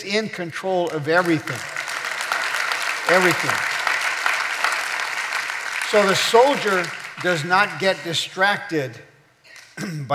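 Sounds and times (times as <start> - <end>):
speech: 0.0 - 1.8, 3.1 - 3.7, 5.9 - 9.1, 9.8 - 10.1
audience applause: 0.8 - 8.1.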